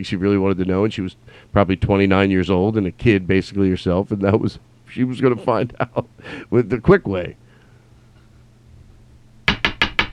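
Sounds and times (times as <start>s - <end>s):
speech: 0.0s - 7.4s
gavel banging: 9.5s - 10.1s.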